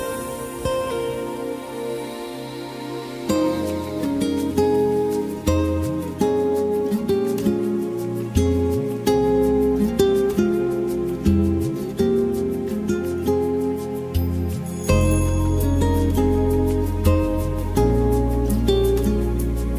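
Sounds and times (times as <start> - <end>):
background vocals: 0.0 - 5.5
lead guitar: 0.0 - 19.7.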